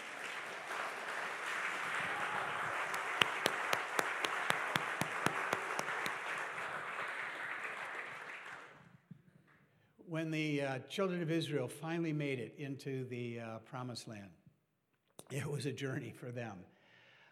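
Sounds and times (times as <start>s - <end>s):
audience applause: 0.0s - 8.8s
speech: 10.2s - 14.4s, 15.3s - 16.7s.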